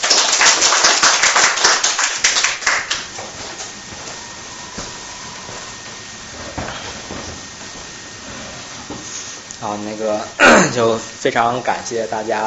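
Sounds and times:
audience applause welcoming speaker: 0.0 - 3.2
speech: 9.6 - 12.4.

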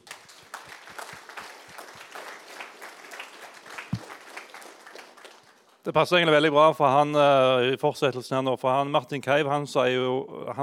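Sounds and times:
audience applause: 0.0 - 5.8
speech: 5.8 - 10.6.

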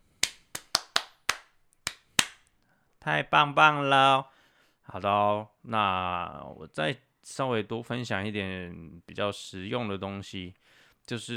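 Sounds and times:
hands clapping: 0.1 - 2.5
speech: 3.0 - 4.3, 4.9 - 11.3.

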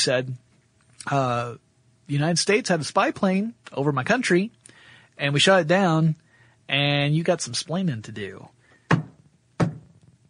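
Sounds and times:
speech: 0.0 - 0.4, 1.0 - 4.6, 5.2 - 8.6
shoe banging on a table: 8.9 - 10.0.

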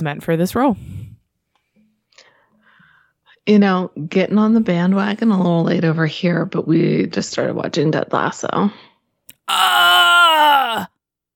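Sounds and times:
speech: 0.0 - 0.9, 3.4 - 8.9, 9.5 - 10.9
person screaming: 9.3 - 10.9.

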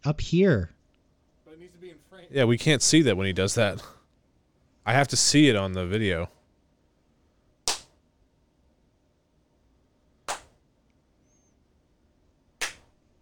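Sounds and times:
speech: 0.0 - 0.8, 1.6 - 4.0, 4.8 - 6.4
hand clap for video sync: 7.7 - 8.0, 10.3 - 10.6, 12.6 - 13.0.

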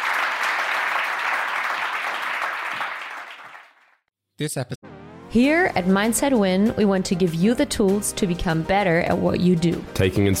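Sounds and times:
crowd applause: 0.0 - 3.9
speech: 4.4 - 10.3.

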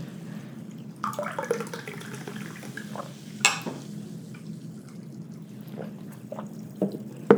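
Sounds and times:
fizzy drink bubbling while poured: 0.7 - 7.3
glass clink: 3.4 - 3.8.

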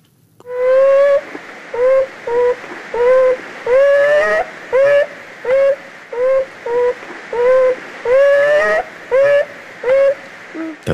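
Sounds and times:
young beaver calling: 0.4 - 10.9.

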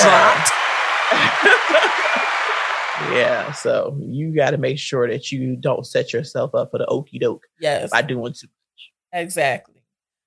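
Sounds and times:
hands clapping: 0.0 - 3.8
speech: 3.0 - 9.7.

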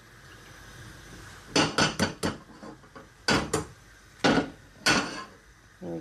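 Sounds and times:
two eggs cracked against a hot pan for nasi goreng: 1.5 - 5.4.

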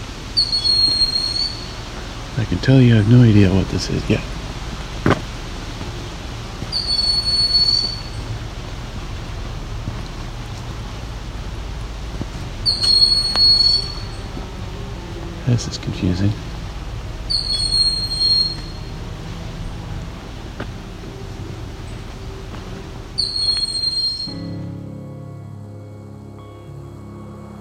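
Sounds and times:
bird alarm call in forest: 0.0 - 2.0, 6.6 - 8.4, 12.6 - 14.4, 17.2 - 19.0, 23.1 - 24.6
low steady rumble: 0.0 - 27.5
speech: 0.4 - 0.7, 2.4 - 4.3, 15.6 - 16.5.

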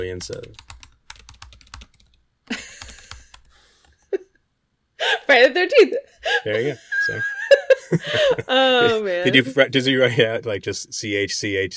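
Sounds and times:
speech: 0.0 - 0.7, 5.3 - 11.7
typing a Google search on a computer keyboard: 0.0 - 4.0
laughter: 6.5 - 9.6.

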